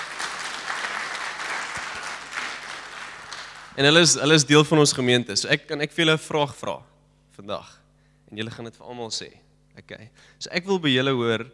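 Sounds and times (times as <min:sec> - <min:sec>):
audience applause: 0:00.0 - 0:03.8
speech: 0:03.8 - 0:11.5.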